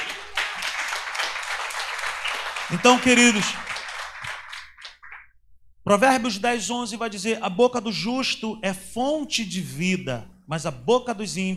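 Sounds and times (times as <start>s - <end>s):
audience applause: 0.0s - 5.2s
speech: 2.7s - 3.6s, 5.9s - 11.5s.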